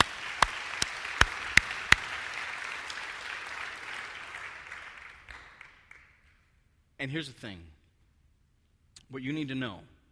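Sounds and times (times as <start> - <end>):
audience hand clapping: 0.0 - 6.5
speech: 7.0 - 7.8, 9.1 - 9.9.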